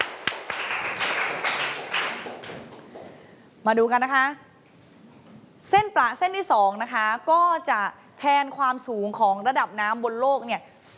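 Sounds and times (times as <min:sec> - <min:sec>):
classroom students clapping: 0:00.0 - 0:03.2
speech: 0:03.6 - 0:04.4, 0:05.6 - 0:10.9.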